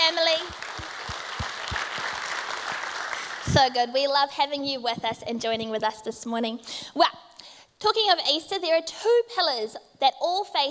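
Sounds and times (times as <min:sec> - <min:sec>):
audience applause: 0:00.3 - 0:03.5
speech: 0:03.6 - 0:07.2, 0:07.8 - 0:10.6.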